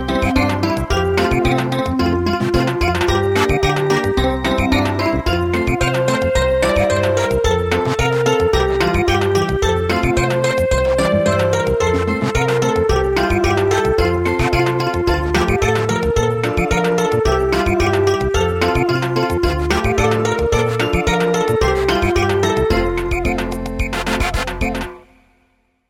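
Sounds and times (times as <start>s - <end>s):
samba music: 0.1s - 25.0s.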